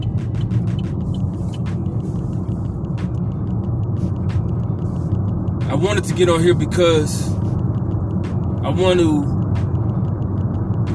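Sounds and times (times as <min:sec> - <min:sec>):
road rumble inside a moving car: 0:00.0 - 0:10.9
speech: 0:05.7 - 0:07.4, 0:08.7 - 0:09.4.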